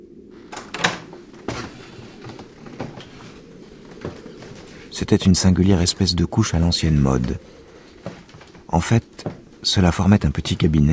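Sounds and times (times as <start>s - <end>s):
door being locked: 0.5s - 1.1s
speech: 5.0s - 7.6s, 8.8s - 10.9s.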